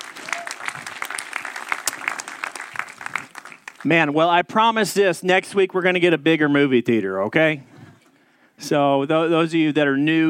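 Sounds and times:
audience applause: 0.0 - 4.2
speech: 3.8 - 7.7, 8.6 - 10.2.

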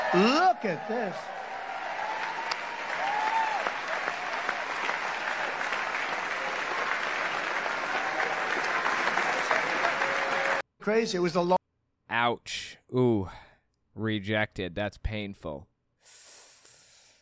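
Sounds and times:
loud applause: 0.0 - 10.6
speech: 0.1 - 1.4, 10.8 - 11.6, 12.2 - 13.4, 14.0 - 16.2.

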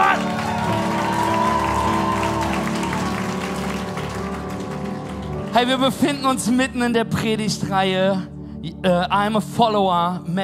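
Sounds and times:
crowd applause: 0.0 - 6.2
speech: 5.6 - 10.4.

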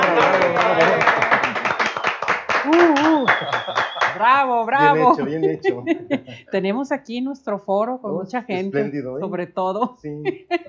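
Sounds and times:
laughter: 0.0 - 2.0, 2.6 - 6.6, 8.5 - 9.1, 10.1 - 10.6
applause: 0.0 - 6.2
speech: 4.2 - 10.6.

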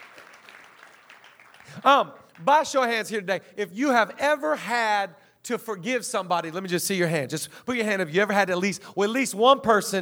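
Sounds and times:
audience clapping: 0.0 - 3.2
speech: 1.7 - 9.9.

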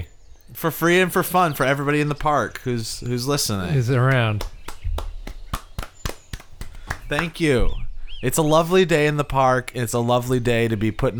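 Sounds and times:
speech: 0.6 - 4.6, 7.1 - 11.1
hand claps: 3.9 - 7.5.

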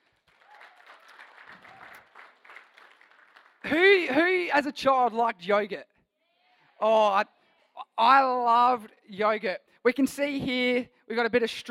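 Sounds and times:
audience clapping: 0.0 - 3.8
speech: 3.6 - 5.9, 6.8 - 7.4, 8.0 - 11.6.

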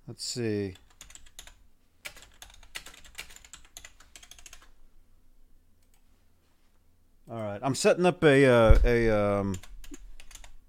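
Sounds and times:
faint hum: 0.0 - 10.6
speech: 0.1 - 0.8, 7.6 - 9.7
rapid typing on a computer keyboard: 0.8 - 4.7, 9.5 - 10.6.

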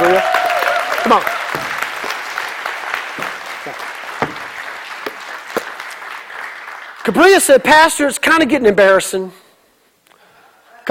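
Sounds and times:
audience round of applause: 0.0 - 7.1
speech: 1.0 - 1.7, 7.1 - 9.4.

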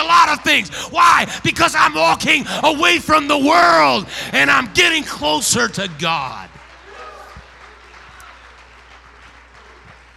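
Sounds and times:
speech: 0.3 - 6.5
audience applause: 5.6 - 10.1.

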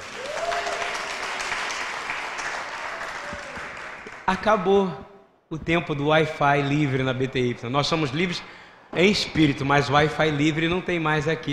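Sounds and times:
audience applauding: 0.0 - 4.5
speech: 4.3 - 11.5.

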